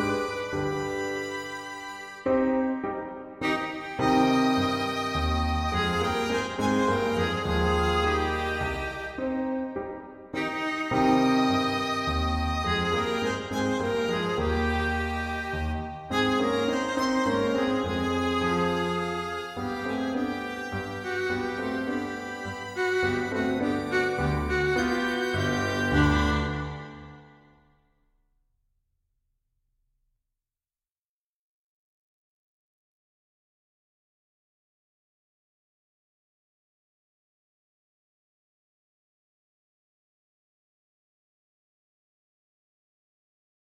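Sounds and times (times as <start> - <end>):
violin in a trio: 0.0 - 27.5
piano in a trio: 0.0 - 27.6.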